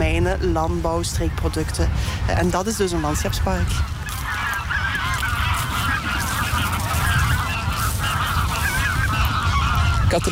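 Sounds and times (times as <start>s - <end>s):
flock of geese in the Maas valley honking: 0.0s - 10.2s
speech: 0.3s - 4.1s
many geese wings beating as the birds take off: 2.6s - 10.2s.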